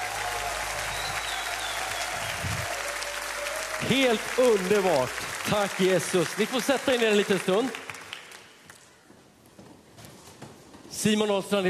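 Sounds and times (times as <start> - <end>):
applause: 0.0 - 9.0
speech: 3.8 - 7.8, 11.0 - 11.6.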